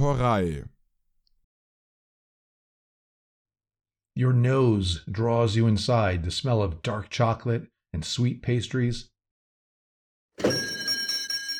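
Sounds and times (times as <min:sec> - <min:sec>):
speech: 0:00.0 - 0:00.7, 0:04.2 - 0:09.1
shop door bell jingling: 0:10.4 - 0:11.5.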